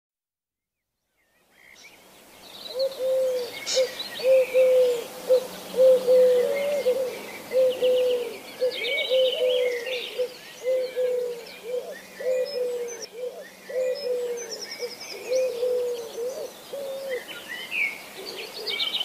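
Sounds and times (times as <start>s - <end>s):
Eurasian collared dove cooing: 2.7s - 19.0s.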